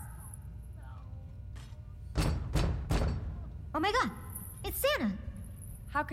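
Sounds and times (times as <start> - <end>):
knock on a door: 2.1 - 3.3
speech: 3.7 - 4.2, 5.9 - 6.1.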